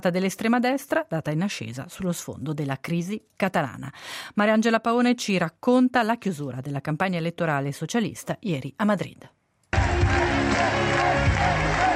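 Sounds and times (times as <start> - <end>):
speech: 0.0 - 10.8
crowd applause in a sports hall at Alcalá de Henares: 9.8 - 11.9.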